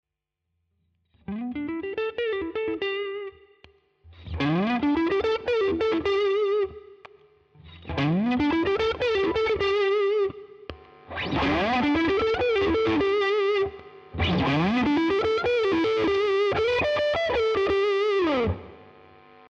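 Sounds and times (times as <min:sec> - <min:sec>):
Stratocaster electric guitar with gain and tone at 12 o'clock: 0:01.1 - 0:19.4.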